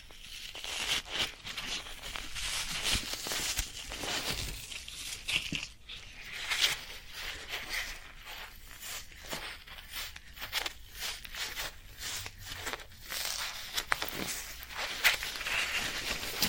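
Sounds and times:
floral foam crackling and crunching being handled: 0.0 - 16.4.

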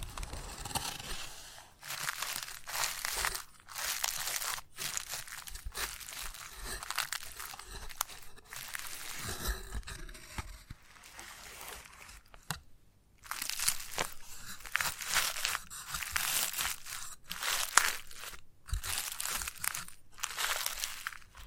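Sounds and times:
chalk scraping and scratching: 0.2 - 12.3, 13.3 - 21.3.

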